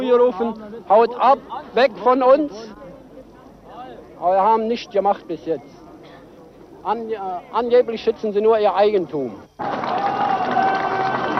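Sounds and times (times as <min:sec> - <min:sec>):
speech: 0:00.1 - 0:02.8, 0:04.2 - 0:05.8, 0:06.8 - 0:10.3
crowd cheering and applauding: 0:09.6 - 0:11.3.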